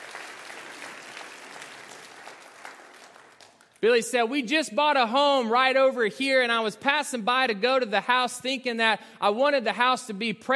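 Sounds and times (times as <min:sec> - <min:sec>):
church congregation applauding to welcome guests at Calvary: 0:00.0 - 0:04.0
speech: 0:03.8 - 0:10.5.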